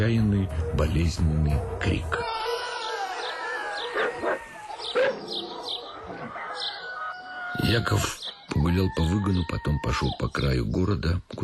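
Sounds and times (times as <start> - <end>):
speech: 0.0 - 2.3, 7.7 - 11.4
dogs barking loudly: 2.4 - 7.0.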